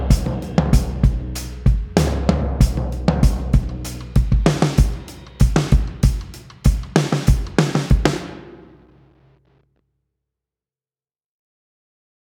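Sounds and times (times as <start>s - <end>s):
lo-fi music: 0.0s - 9.3s.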